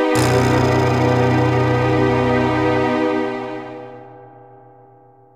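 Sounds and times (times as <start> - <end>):
role-playing game ghost town music: 0.1 - 4.1.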